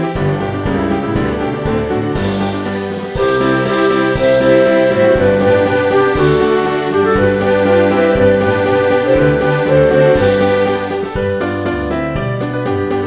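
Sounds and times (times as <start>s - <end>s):
violin playing a folk tune: 0.0s - 12.9s.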